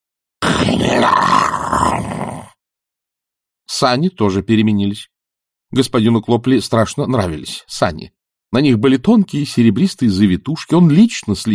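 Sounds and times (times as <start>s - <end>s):
pig grunting: 0.4s - 2.6s
speech: 0.7s - 1.9s, 3.8s - 5.1s, 5.7s - 11.5s.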